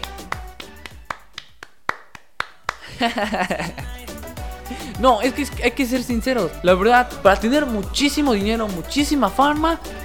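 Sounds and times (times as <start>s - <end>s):
hand clapping: 0.0s - 4.0s
laughter: 2.8s - 4.0s
speech: 3.0s - 4.0s, 4.7s - 10.0s.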